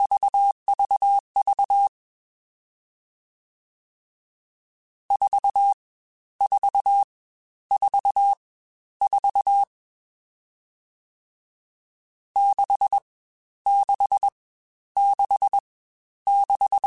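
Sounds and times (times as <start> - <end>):
CW Morse code groups in staccato beeps: 0.1 - 1.9, 5.1 - 5.8, 7.7 - 8.4, 9.0 - 9.7, 12.4 - 13.0, 13.7 - 14.4, 15.0 - 15.6, 16.3 - 16.8.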